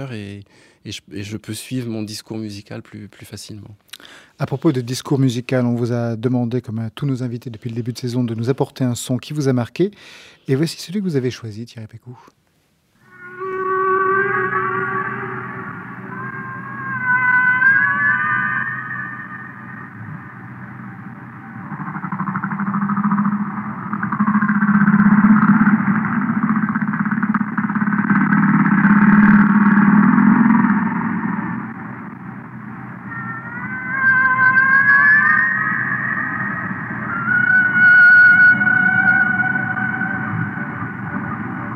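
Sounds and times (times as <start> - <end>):
speech: 0.0 - 12.4
rorqual whale vocalization: 13.0 - 32.2, 33.0 - 41.7.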